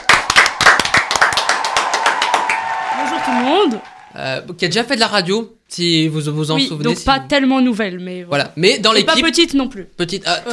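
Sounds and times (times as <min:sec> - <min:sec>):
audience clapping: 0:00.0 - 0:04.4
speech: 0:03.5 - 0:10.5.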